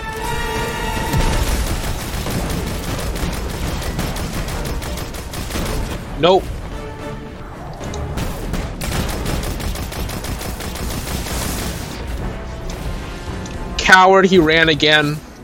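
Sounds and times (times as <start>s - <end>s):
shock turrets firing in a video game: 0.1s - 6.4s, 7.8s - 13.5s
speech: 6.2s - 6.6s, 13.9s - 15.3s.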